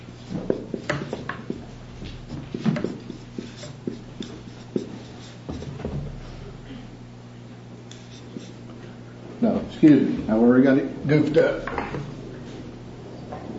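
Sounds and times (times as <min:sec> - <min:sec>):
writing an expression on a board: 0:00.2 - 0:05.9, 0:08.0 - 0:08.6
speech: 0:09.8 - 0:12.0.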